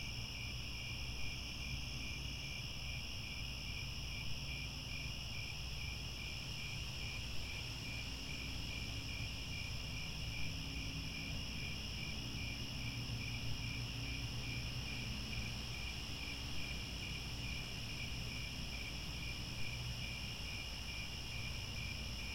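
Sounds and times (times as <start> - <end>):
crickets trilling: 0.0 - 22.3.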